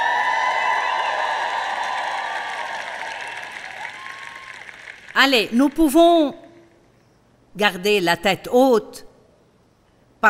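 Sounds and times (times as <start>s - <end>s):
crowd cheering and shouting: 0.0s - 4.8s
speech: 5.2s - 6.4s, 7.6s - 9.1s.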